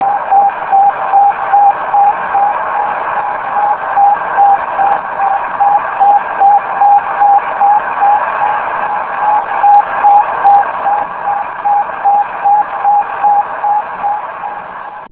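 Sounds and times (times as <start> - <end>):
beeping: 0.0 - 15.1.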